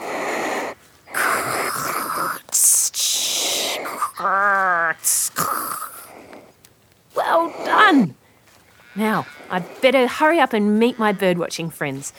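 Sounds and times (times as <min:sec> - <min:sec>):
person imitating a bettong's hiss: 0:00.0 - 0:06.5
speech: 0:09.0 - 0:12.1.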